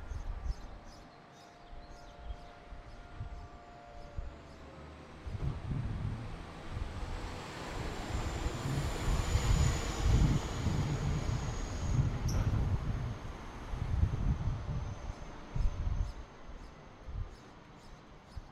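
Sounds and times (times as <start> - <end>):
wind: 0.0 - 18.5
siren: 0.2 - 16.6.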